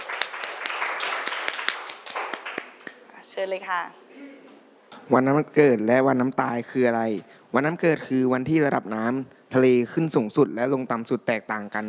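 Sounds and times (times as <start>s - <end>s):
classroom applause: 0.0s - 3.0s
speech: 3.4s - 4.0s, 5.1s - 11.8s.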